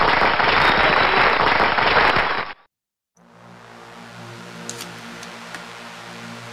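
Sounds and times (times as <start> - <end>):
crowd applause: 0.0 - 2.6.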